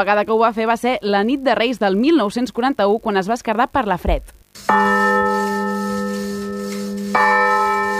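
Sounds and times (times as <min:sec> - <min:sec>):
speech: 0:00.0 - 0:05.4
repaired church bell of the village church of Granyena de Segarra ringing: 0:04.7 - 0:07.9.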